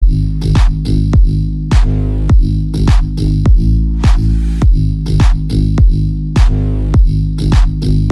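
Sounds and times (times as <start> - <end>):
boosted bass: 0.0 - 8.1.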